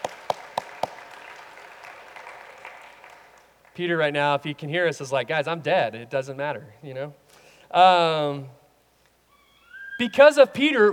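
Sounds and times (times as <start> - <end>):
audience clapping: 0.0 - 4.2
speech: 3.8 - 8.6, 10.0 - 10.9.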